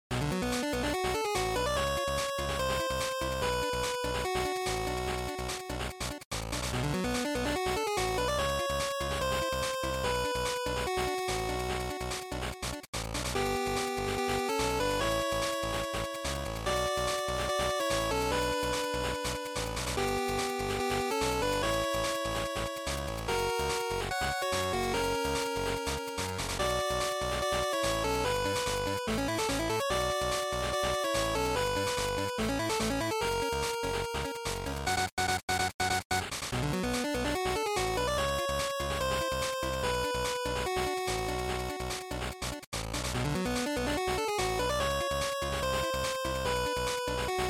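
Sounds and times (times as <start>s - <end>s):
Game Boy fighting game stage music: 0.1s - 47.4s.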